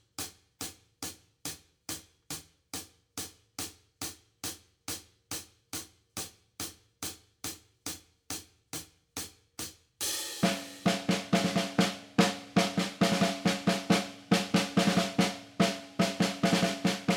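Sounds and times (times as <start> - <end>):
drums: 0.0 - 17.1.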